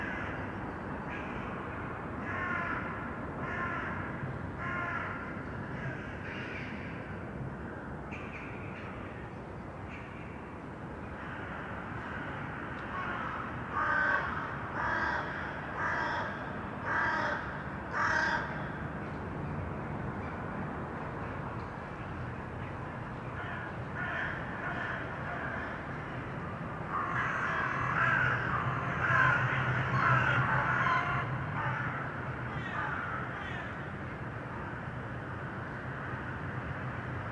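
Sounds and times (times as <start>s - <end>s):
low rumbling urban noise: 0.0s - 37.3s
crow cawing: 2.2s - 4.0s, 4.6s - 5.2s, 12.9s - 18.7s, 23.4s - 25.8s, 26.9s - 33.8s.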